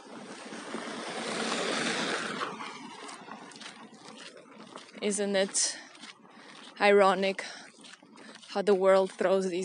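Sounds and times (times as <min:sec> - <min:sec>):
car driving past on a woodland road: 0:00.3 - 0:03.8
speech: 0:05.0 - 0:05.8, 0:06.8 - 0:07.6, 0:08.5 - 0:09.6.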